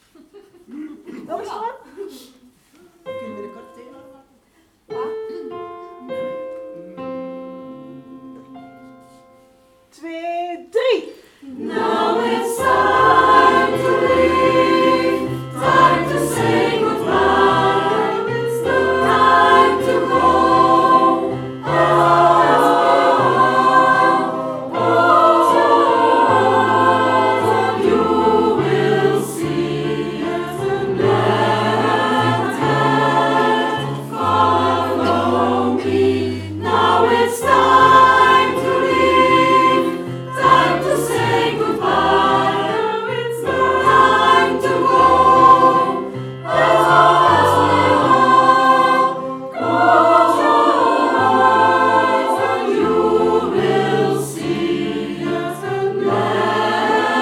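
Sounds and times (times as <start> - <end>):
SATB choir singing a refrain: 11.4 - 57.2.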